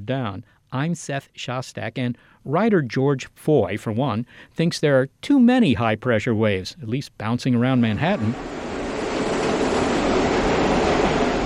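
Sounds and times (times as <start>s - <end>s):
speech: 0.0s - 8.6s
subway trains arriving at the 79th Street and Broadway stop: 7.6s - 11.4s.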